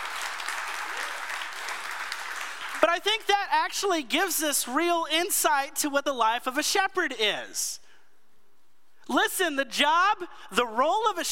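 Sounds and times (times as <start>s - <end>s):
audience applause: 0.0s - 2.8s
speech: 2.9s - 7.8s, 9.1s - 11.2s.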